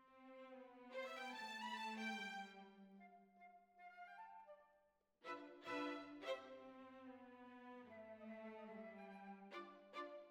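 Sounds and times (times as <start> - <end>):
violins: 0.0 - 3.1, 5.2 - 10.2.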